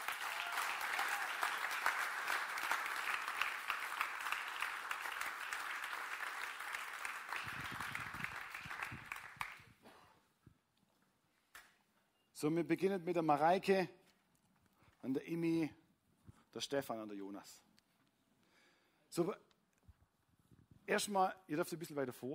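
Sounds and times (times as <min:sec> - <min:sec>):
audience applause: 0:00.0 - 0:09.7
speech: 0:12.4 - 0:14.0, 0:15.0 - 0:15.8, 0:16.5 - 0:17.7, 0:19.2 - 0:19.5, 0:20.9 - 0:22.3.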